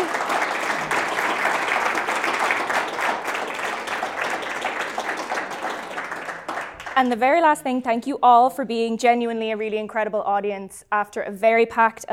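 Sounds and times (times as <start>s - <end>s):
audience applause for conference panel guests: 0.0s - 7.1s
speech: 7.0s - 12.1s.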